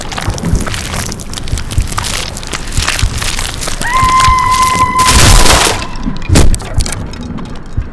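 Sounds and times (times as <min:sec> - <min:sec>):
halloween sound effects: 0:00.0 - 0:07.7.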